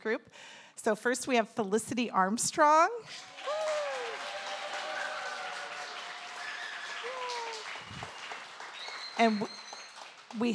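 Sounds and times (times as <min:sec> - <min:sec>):
speech: 0:00.0 - 0:03.3, 0:09.2 - 0:09.6, 0:10.3 - 0:10.5
audience applause: 0:03.1 - 0:10.5.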